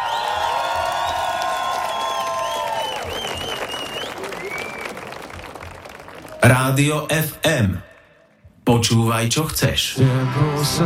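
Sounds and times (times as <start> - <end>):
audience applause and cheering: 0.0 - 7.0
speech: 6.5 - 7.9, 8.7 - 10.8.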